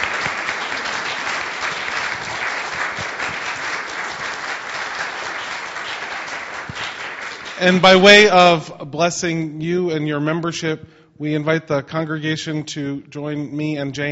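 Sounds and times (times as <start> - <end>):
audience applause: 0.0 - 8.3
speech: 7.6 - 14.0.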